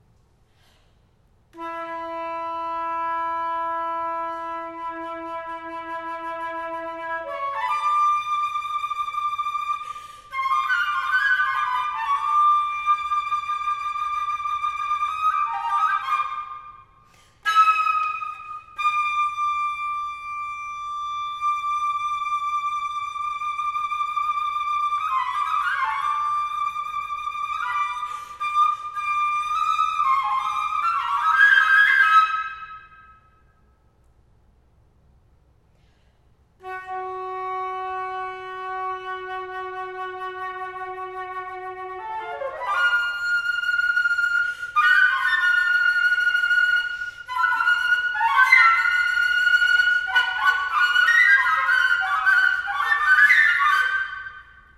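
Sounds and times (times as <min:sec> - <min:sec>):
solo flute etude: 0:01.5 - 0:33.8, 0:36.6 - 0:54.7.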